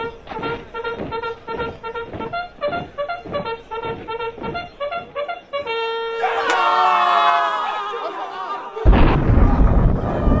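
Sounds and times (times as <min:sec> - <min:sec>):
rhythmic trumpet-like blasts: 0:00.0 - 0:06.6
clamorous noise: 0:00.0 - 0:06.7
laughter: 0:06.2 - 0:09.4
thunderclap crashing into a deep rumble: 0:08.9 - 0:10.3.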